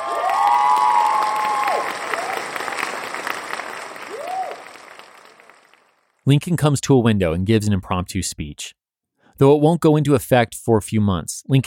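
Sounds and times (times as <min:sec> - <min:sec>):
crowd cheering and applauding at the White House: 0:00.0 - 0:06.2
speech: 0:06.3 - 0:08.8, 0:09.4 - 0:11.6.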